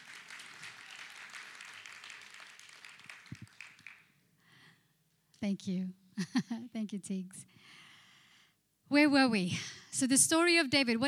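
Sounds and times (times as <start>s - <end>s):
audience clapping: 0.0s - 4.2s
speech: 5.4s - 7.8s, 8.9s - 11.0s.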